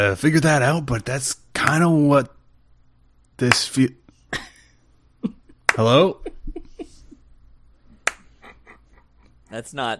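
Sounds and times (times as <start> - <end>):
speech: 0.0 - 2.4, 3.4 - 4.5, 5.2 - 6.7, 9.5 - 9.9
laughter: 5.2 - 7.3, 8.4 - 9.4
slow clap: 8.0 - 8.3.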